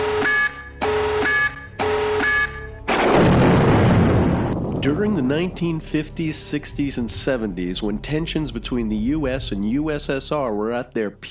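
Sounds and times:
tactical nuke electronic warning beeps: 0.0 - 2.8
tactical nuke explosion: 2.9 - 5.8
speech: 4.8 - 11.2.

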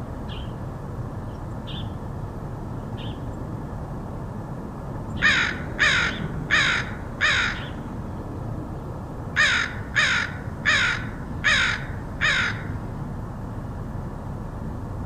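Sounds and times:
low background rumble: 0.0 - 15.0
crow cawing: 5.2 - 7.8, 9.4 - 12.8.

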